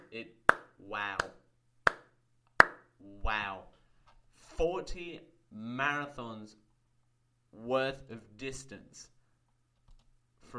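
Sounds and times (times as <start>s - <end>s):
one person clapping hands in applause: 0.0s - 2.8s
speech: 0.1s - 1.4s, 3.0s - 3.8s, 4.6s - 6.6s, 7.5s - 9.1s.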